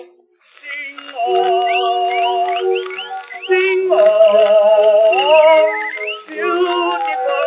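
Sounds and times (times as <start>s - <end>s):
bird song: 1.4s - 7.3s.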